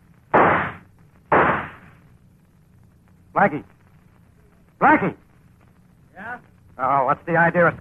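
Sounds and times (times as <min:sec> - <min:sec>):
low steady hum: 0:00.0 - 0:07.7
gunshots: 0:00.3 - 0:02.0
speech: 0:03.4 - 0:03.8, 0:04.8 - 0:05.2, 0:06.4 - 0:07.7.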